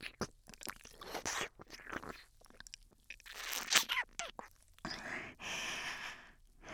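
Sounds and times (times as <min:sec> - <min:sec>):
ear licking: 0:00.0 - 0:05.1.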